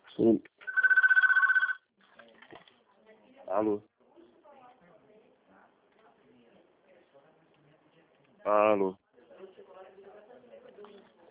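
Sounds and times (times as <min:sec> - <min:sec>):
speech: 0:00.2 - 0:00.5, 0:03.6 - 0:03.9, 0:08.5 - 0:09.0
telephone ringing: 0:00.7 - 0:01.9.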